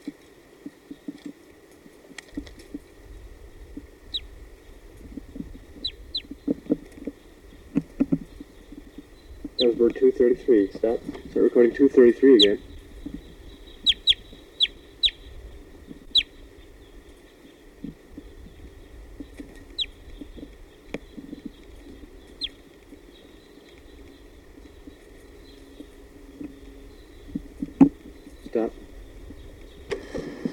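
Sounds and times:
low steady hum: 0.0s - 30.5s
wild birds chirping: 0.0s - 30.5s
faint clucking-like sounds: 3.7s - 18.6s, 19.2s - 28.8s
speech: 9.6s - 12.7s.

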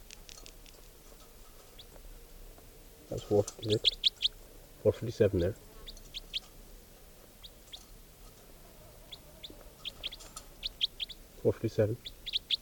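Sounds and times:
bird giving short high chirps: 1.5s - 2.0s, 3.1s - 6.6s, 7.3s - 12.5s
speech: 3.1s - 4.0s, 4.8s - 5.7s, 11.4s - 12.2s
bird giving a lower harmonic clucking call: 3.2s - 4.4s, 5.7s - 6.6s, 8.7s - 12.5s.

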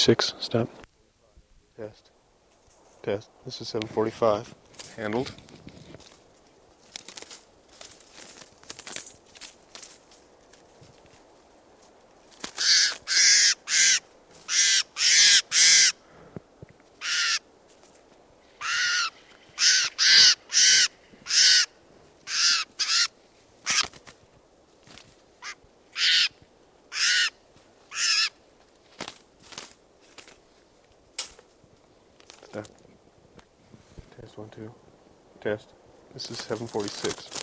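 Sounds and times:
speech: 0.0s - 0.8s, 1.8s - 2.1s, 3.0s - 5.5s
crow cawing: 12.5s - 16.1s, 17.0s - 17.5s, 18.5s - 23.9s, 25.4s - 28.4s.

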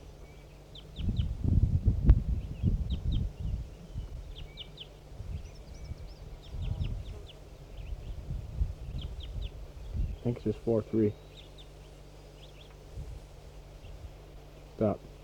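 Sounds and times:
crossbill calling: 0.0s - 1.4s, 2.4s - 8.2s, 8.8s - 15.2s
speech: 10.3s - 11.3s, 14.8s - 15.1s.

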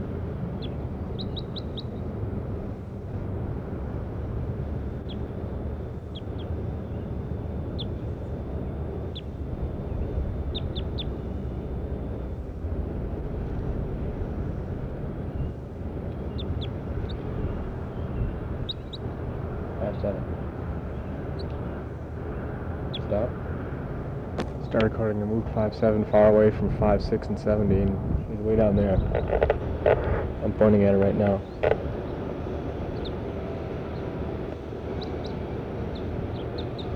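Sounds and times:
low rumbling background: 0.0s - 36.9s
bird chirps: 0.6s - 2.0s, 9.1s - 11.6s, 15.4s - 23.4s, 28.6s - 36.9s
speech: 24.8s - 31.8s.

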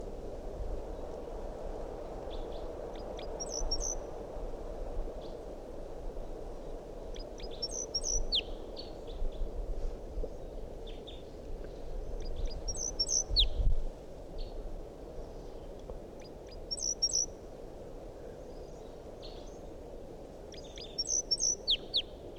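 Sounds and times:
hiss: 0.0s - 22.3s
wild bird chirping: 3.2s - 4.0s, 7.2s - 8.9s, 12.2s - 13.6s, 16.2s - 17.3s, 20.6s - 22.1s.

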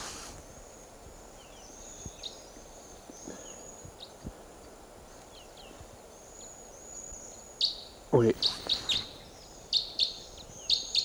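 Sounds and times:
hiss: 0.0s - 11.0s
speech: 8.1s - 8.6s
bird flight call chips: 8.2s - 9.3s.

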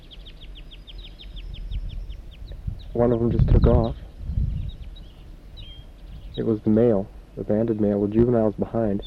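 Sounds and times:
juvenile wild bird chirping in a Table Mountain pine: 0.0s - 6.5s
low rumbling background: 0.0s - 9.0s
speech: 3.0s - 4.0s, 6.4s - 9.0s.

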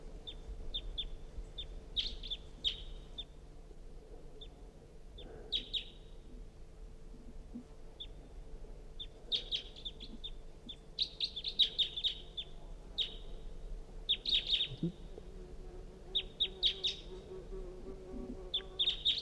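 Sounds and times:
wild bird calling: 0.2s - 3.4s, 5.2s - 6.1s, 9.0s - 13.4s, 14.1s - 15.0s, 16.1s - 17.2s, 18.5s - 19.2s.

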